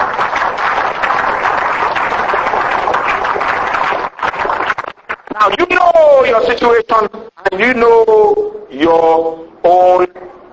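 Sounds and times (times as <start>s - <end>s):
audience hand clapping: 0.0s - 5.9s
speech: 6.6s - 10.1s.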